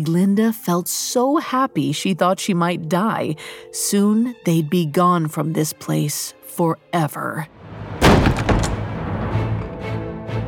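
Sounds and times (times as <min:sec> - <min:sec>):
speech: 0:00.0 - 0:07.6
door slamming open: 0:07.7 - 0:09.8.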